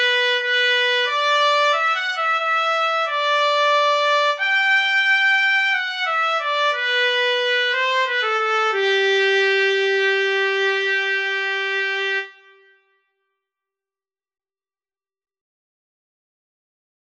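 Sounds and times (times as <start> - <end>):
slow etude in A major: 0.0 - 12.8.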